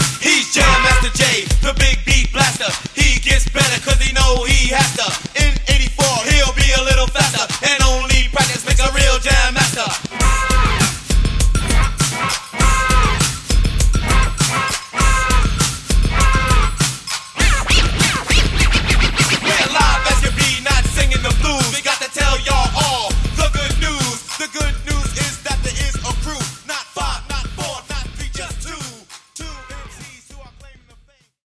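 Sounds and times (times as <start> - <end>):
old hip hop drum beat: 0.0 - 31.4.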